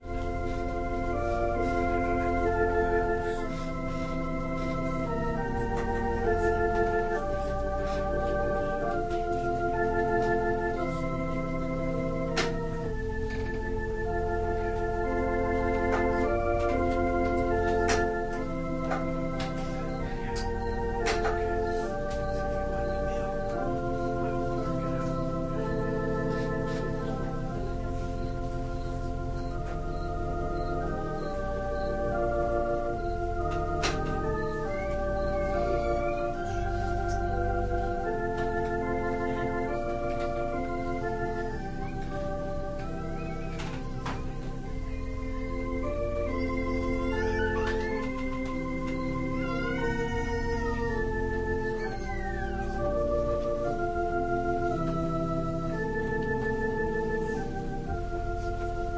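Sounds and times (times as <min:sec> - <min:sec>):
organ playing a prelude: 0:00.0 - 0:58.9
violin playing a prelude: 0:45.9 - 0:53.0.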